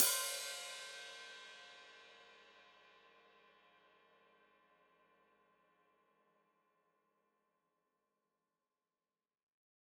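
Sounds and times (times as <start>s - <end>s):
open hi-hat played with foot: 0.0s - 1.5s.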